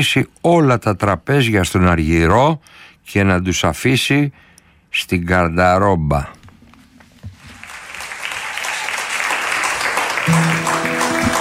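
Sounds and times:
speech: 0.0 - 6.4
audience applause: 7.6 - 11.4.

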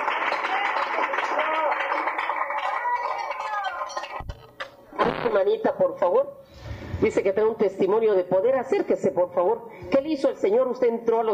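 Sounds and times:
audience applauding: 0.0 - 4.2
speech: 5.3 - 6.4, 7.0 - 11.3.

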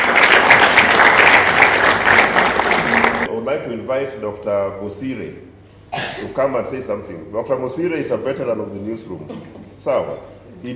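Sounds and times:
audience applause: 0.0 - 3.3
speech: 3.6 - 10.7.

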